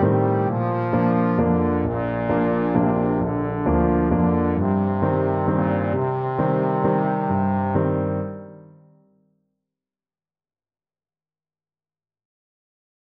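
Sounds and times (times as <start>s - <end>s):
trombone: 0.0s - 8.6s.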